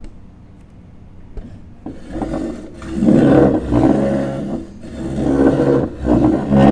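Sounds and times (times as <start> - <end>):
chair: 1.4 - 6.6.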